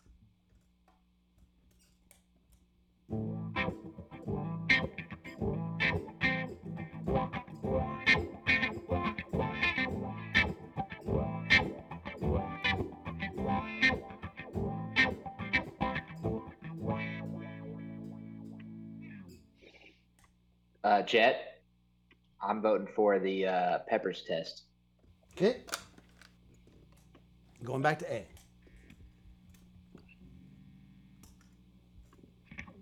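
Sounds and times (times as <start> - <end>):
electric guitar played through a wah pedal: 3.1 - 19.5, 32.0 - 32.7
speech: 20.9 - 21.4, 22.4 - 24.7, 25.4 - 25.8, 27.7 - 28.4.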